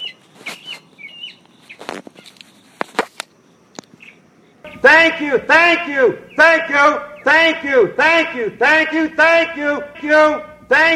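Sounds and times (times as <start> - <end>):
birds chirping and whistling outdoors under a tree: 0.0 - 10.9
hiss: 0.0 - 10.9
sharp clicks or rustles: 0.2 - 4.0
speech: 4.8 - 10.9.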